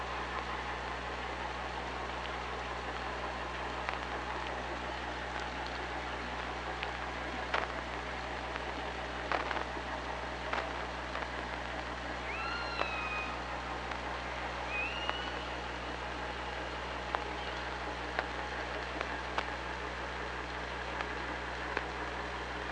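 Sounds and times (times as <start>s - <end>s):
low hum: 0.0s - 22.6s
orca whistled calls underwater: 12.3s - 13.4s, 14.7s - 15.6s.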